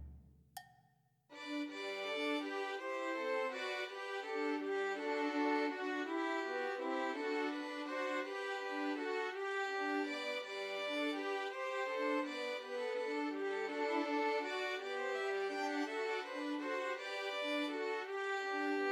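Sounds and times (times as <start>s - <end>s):
three violins playing trios: 1.3s - 18.9s.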